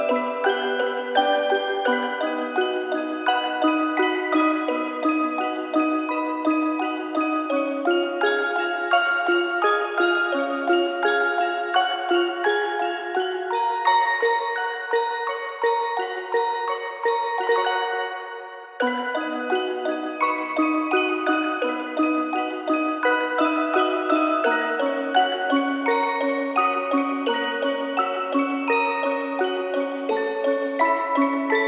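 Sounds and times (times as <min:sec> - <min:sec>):
music box melody: 0:00.0 - 0:31.6.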